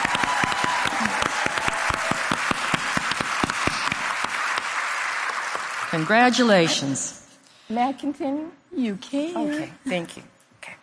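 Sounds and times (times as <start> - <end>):
audience applause: 0.0 - 6.6
speech: 6.0 - 10.3.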